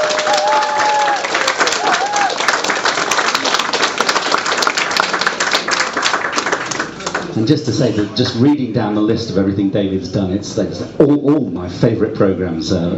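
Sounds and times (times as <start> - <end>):
audience applause welcoming two guests at a live event: 0.0 - 7.4
speech: 7.4 - 12.9.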